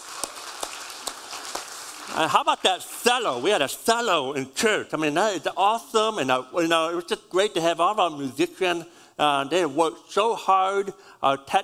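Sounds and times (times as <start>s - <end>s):
church audience applause: 0.0s - 3.6s
speech: 2.2s - 11.6s.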